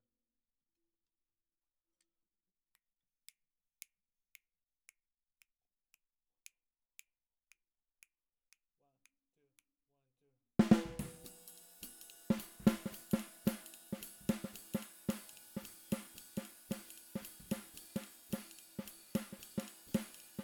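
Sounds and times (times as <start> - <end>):
snare drum: 10.6 - 20.4.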